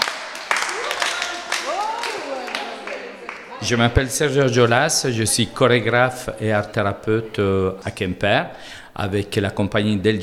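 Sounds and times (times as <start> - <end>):
audience applause: 0.0 - 4.0
excited voices cheering: 0.0 - 4.5
speech: 3.6 - 10.2.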